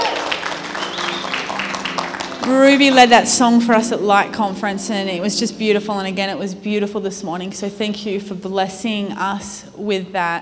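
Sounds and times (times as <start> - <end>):
audience applause: 0.0 - 3.2
speech: 2.4 - 10.4.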